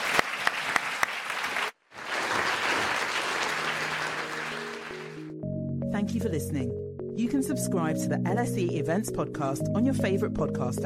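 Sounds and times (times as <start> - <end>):
audience applause: 0.0 - 5.2
speech: 6.0 - 10.8.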